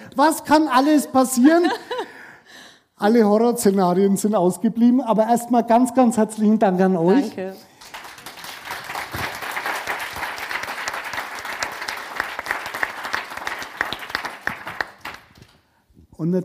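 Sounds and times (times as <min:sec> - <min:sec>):
speech: 0:00.2 - 0:02.0, 0:03.0 - 0:07.7, 0:16.2 - 0:16.4
audience clapping: 0:07.7 - 0:15.6.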